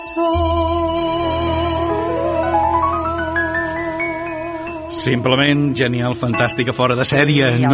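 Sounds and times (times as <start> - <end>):
electronic telephone ringtone for an incoming call: 0.3 - 4.8
speech: 5.0 - 7.7.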